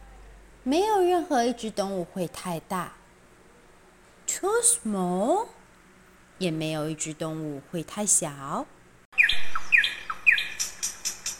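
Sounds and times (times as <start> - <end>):
speech: 0.6 - 3.0, 4.4 - 5.6, 6.4 - 8.8
small bird chirping: 9.2 - 11.3.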